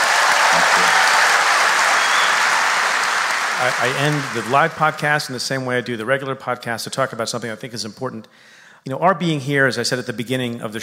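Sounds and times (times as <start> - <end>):
audience applause: 0.0 - 5.2
speech: 3.6 - 10.8.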